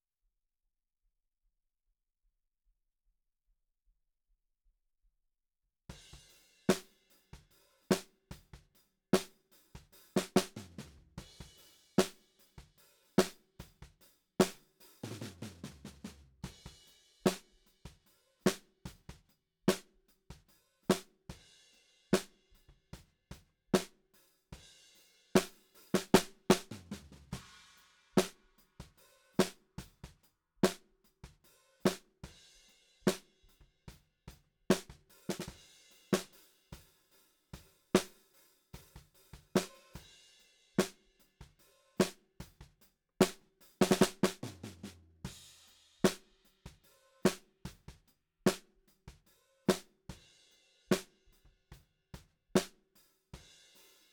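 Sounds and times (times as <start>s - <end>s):
snare drum: 6.2s - 21.1s, 22.2s - 22.4s, 23.8s - 24.0s, 25.4s - 30.9s, 31.8s - 32.2s, 33.1s - 33.4s, 34.7s - 36.9s, 37.6s - 40.0s, 40.8s - 50.0s, 52.6s - 52.8s.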